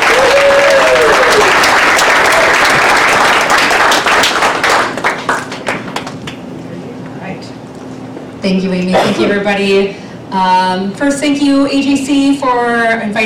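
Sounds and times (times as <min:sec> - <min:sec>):
audience applause welcoming a speaker at an AGC evening event: 0:00.0 - 0:06.4
speech: 0:08.4 - 0:13.2.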